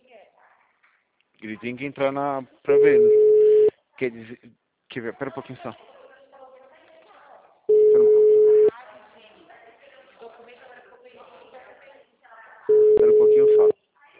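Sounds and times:
speech: 1.4 - 3.2, 4.0 - 5.9
telephone ringing tones of a call being placed: 2.7 - 3.7, 7.7 - 8.7, 12.7 - 13.7.

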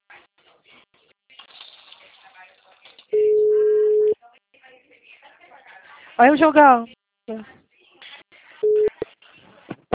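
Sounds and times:
busy tone beep after a dropped phone call: 3.2 - 4.2, 8.6 - 8.9
speech: 6.2 - 7.6.

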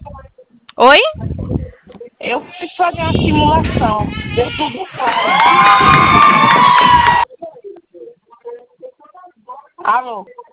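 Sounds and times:
speech: 0.8 - 1.2, 2.2 - 7.0, 9.9 - 10.5
office staff cheering to celebrate hitting a sales target: 4.1 - 7.3.

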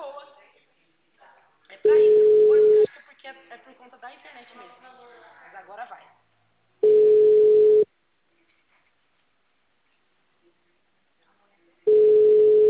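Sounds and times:
mobile phone ringing: 1.9 - 2.9, 6.8 - 7.9, 11.9 - 12.6
speech: 3.7 - 6.2.

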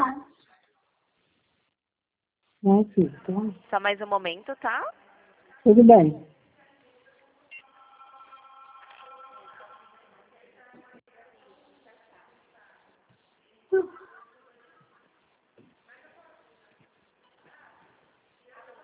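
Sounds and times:
speech: 2.6 - 5.0, 5.6 - 6.4
telephone ringing: 7.6 - 10.2.

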